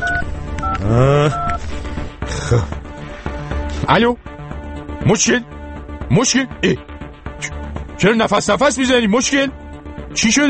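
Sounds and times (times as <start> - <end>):
telephone number being dialed: 0.0 - 1.6
speech: 0.8 - 1.5, 2.5 - 2.8, 3.9 - 4.3, 5.1 - 5.5, 6.1 - 9.6, 10.2 - 10.4.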